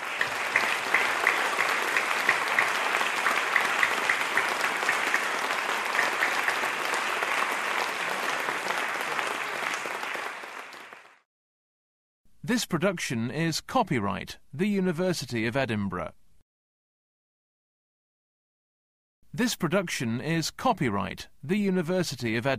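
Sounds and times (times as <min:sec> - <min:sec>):
audience applause after lecture: 0:00.0 - 0:11.2
speech: 0:12.5 - 0:16.2, 0:19.4 - 0:22.5.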